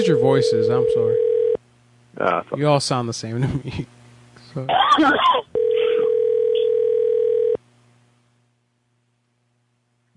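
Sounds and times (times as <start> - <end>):
speech: 0.0 - 1.3, 2.2 - 5.6
telephone ringback tone: 0.0 - 1.6, 5.6 - 7.6.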